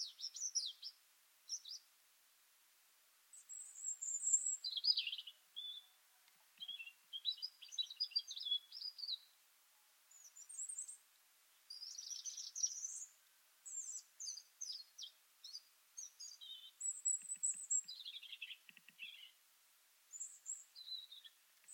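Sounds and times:
European robin song: 0.0 - 1.9, 3.3 - 9.4, 10.1 - 11.0, 11.6 - 19.4, 20.1 - 21.7
hiss: 0.0 - 21.7
faint low clicks: 6.1 - 6.8, 16.8 - 19.3, 21.2 - 21.7.

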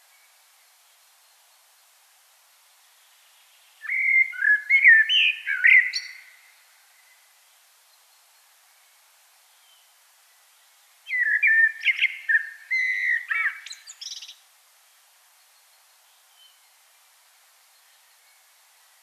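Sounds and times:
common blackbird singing: 3.8 - 6.5, 11.1 - 14.4.

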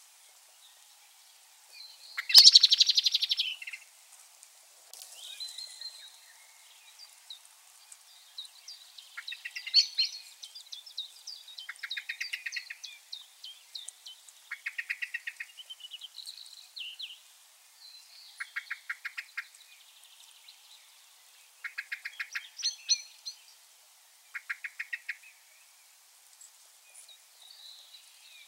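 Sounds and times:
other small birds twittering and whistling: 0.1 - 3.9, 5.0 - 28.4
Common blackbird calling in fast dry clicking notes: 2.2 - 3.8, 9.2 - 10.2, 11.6 - 12.9, 13.7 - 16.5, 18.4 - 19.6, 21.6 - 23.1, 24.4 - 25.2.

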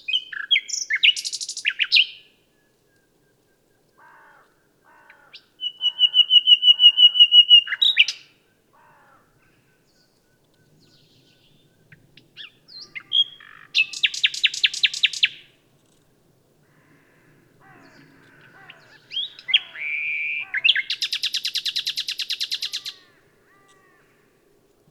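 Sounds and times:
common nightingale singing: 0.0 - 4.0, 5.3 - 8.6, 9.8 - 16.0, 17.7 - 23.8.

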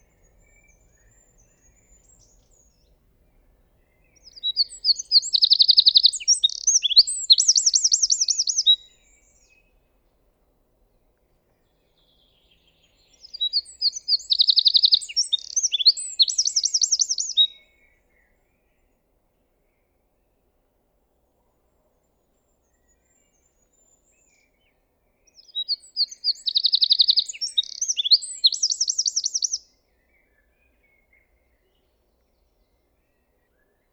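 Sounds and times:
Eurasian wren singing tinkling notes and trills: 3.8 - 9.5, 12.4 - 17.6, 25.3 - 29.7.

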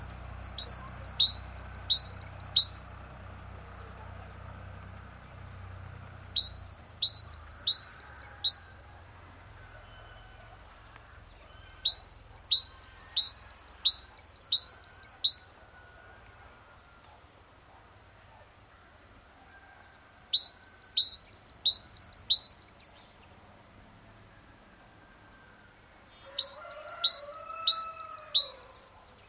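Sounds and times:
great tit calling: 0.1 - 3.0, 5.4 - 8.7, 10.6 - 15.6, 20.0 - 23.2, 26.0 - 29.0
speech: 1.3 - 3.0.

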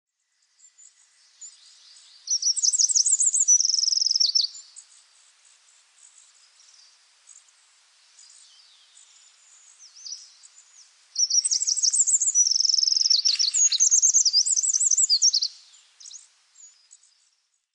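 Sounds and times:
Eurasian wren singing: 0.6 - 4.9, 8.2 - 17.3.

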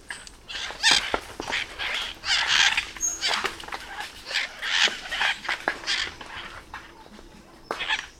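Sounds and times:
bird chattering calls: 0.5 - 6.6.

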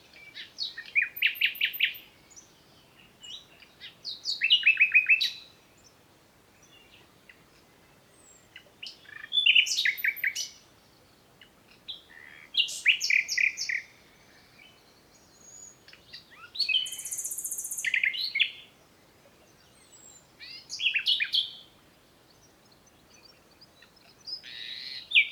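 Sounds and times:
common nightingale song: 0.0 - 25.2.

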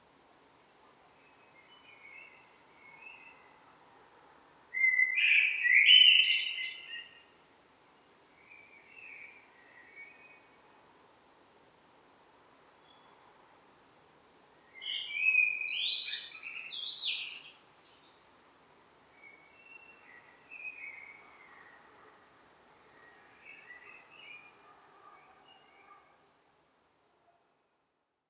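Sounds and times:
common blackbird song: 4.8 - 7.2, 14.8 - 18.3.

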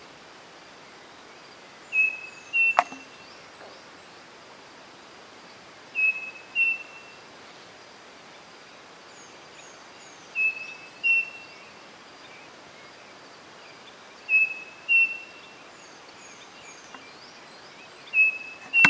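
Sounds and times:
faint high chirps from other birds: 1.8 - 4.0, 5.9 - 7.2, 9.1 - 18.8
bird whistling: 1.9 - 3.2, 6.0 - 7.1, 10.4 - 11.5, 14.3 - 15.4, 18.1 - 18.8.

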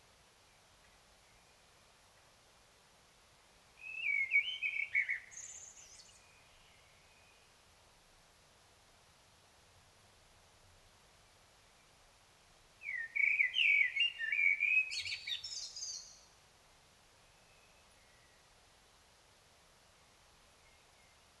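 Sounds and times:
common blackbird singing: 3.8 - 6.3, 12.8 - 16.3.

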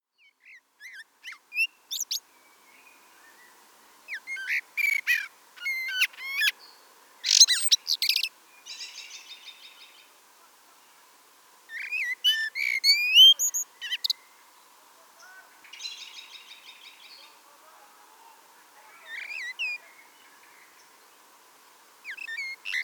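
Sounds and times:
common blackbird twittering: 4.1 - 6.5, 7.3 - 9.2, 11.7 - 14.2, 19.0 - 19.8, 22.1 - 22.8.

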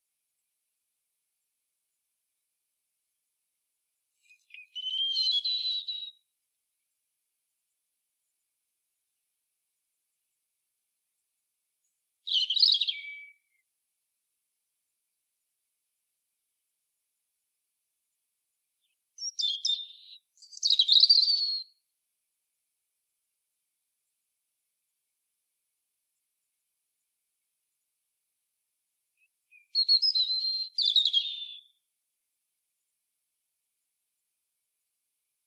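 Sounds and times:
European robin singing thin whistles: 4.2 - 6.2, 12.3 - 13.6, 18.8 - 21.8, 29.2 - 31.8.

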